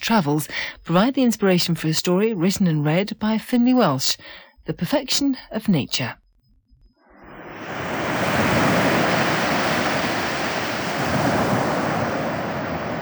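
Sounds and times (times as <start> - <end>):
speech: 0.0 - 6.2
ocean surf and waves: 7.2 - 13.0.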